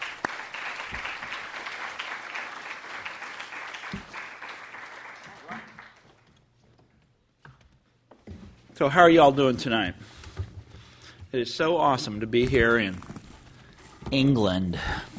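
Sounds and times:
audience applauding a guest speaker at an LSE event: 0:00.0 - 0:06.3
speech: 0:08.8 - 0:10.2, 0:11.3 - 0:13.1, 0:14.1 - 0:15.1.

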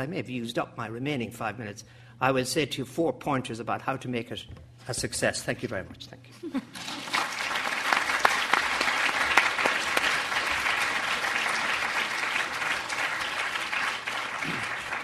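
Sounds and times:
speech: 0:00.0 - 0:07.1
audience applause: 0:06.8 - 0:15.0.

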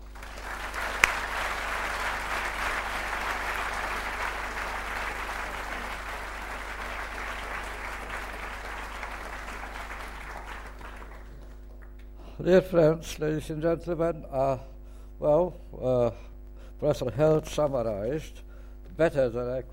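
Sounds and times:
audience applauding to welcome a lecturer: 0:00.0 - 0:11.9
speech: 0:12.4 - 0:16.2, 0:16.8 - 0:18.4, 0:19.0 - 0:19.7.

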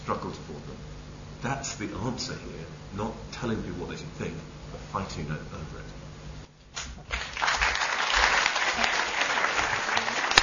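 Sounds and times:
speech: 0:00.1 - 0:06.0
audience applause: 0:07.1 - 0:10.4.

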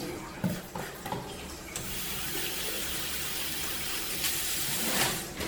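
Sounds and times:
hands washed under running tap water at a clinic: 0:00.0 - 0:05.3.

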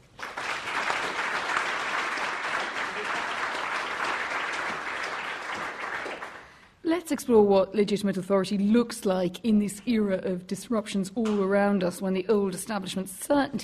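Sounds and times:
audience round of applause: 0:00.0 - 0:06.6
speech: 0:07.1 - 0:13.6.

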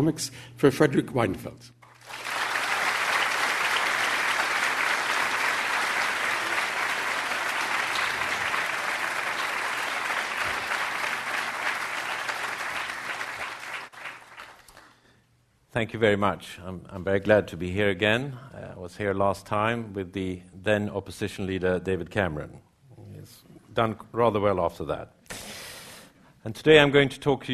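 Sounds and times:
speech: 0:00.0 - 0:02.3, 0:15.8 - 0:22.6, 0:23.8 - 0:25.2, 0:26.4 - 0:27.5
audience applause at the London School of Economics welcoming a speaker: 0:01.9 - 0:14.9.

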